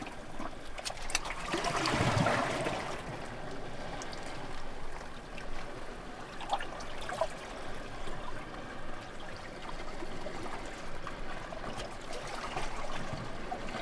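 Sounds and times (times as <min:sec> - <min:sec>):
waves: 0:00.0 - 0:13.8.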